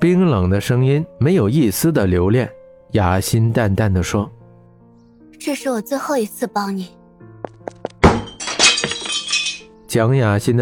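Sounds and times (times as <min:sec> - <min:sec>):
speech: 0:00.0 - 0:04.4, 0:05.4 - 0:07.0, 0:09.9 - 0:10.6
dishes crashing to the floor: 0:08.0 - 0:09.6.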